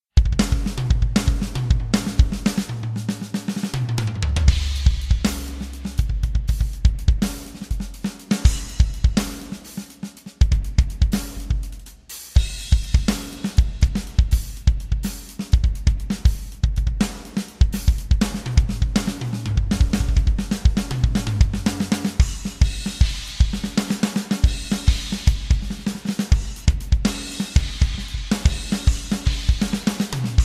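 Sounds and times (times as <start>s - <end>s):
drums: 0.0s - 30.4s.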